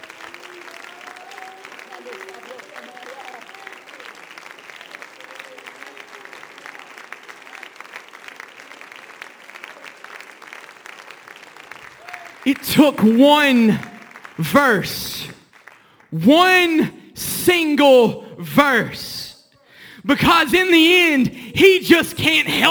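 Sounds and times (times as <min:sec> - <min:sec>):
large audience clapping hands: 0:00.0 - 0:22.7
speech: 0:12.4 - 0:15.4, 0:16.1 - 0:16.9, 0:17.5 - 0:19.1, 0:20.1 - 0:22.7
voices calling out and murmuring: 0:12.5 - 0:15.4, 0:16.2 - 0:22.7.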